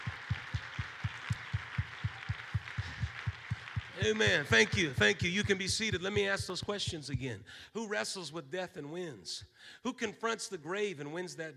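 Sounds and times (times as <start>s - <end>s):
audience clapping hands in unison: 0.0s - 7.1s
low thumping beat: 0.0s - 7.4s
speech: 4.0s - 11.5s.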